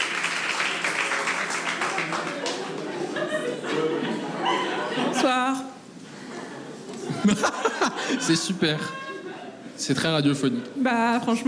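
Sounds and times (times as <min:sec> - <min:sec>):
audience applause: 0:00.0 - 0:03.1
laughter: 0:01.9 - 0:05.4, 0:06.2 - 0:09.8
speech: 0:07.2 - 0:09.0, 0:09.8 - 0:11.4.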